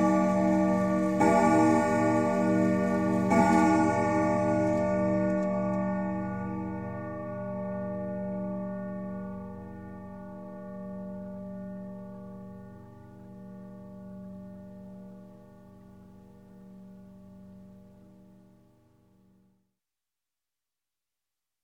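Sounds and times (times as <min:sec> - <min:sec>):
grandfather clock chime and strike: 0:00.0 - 0:07.7.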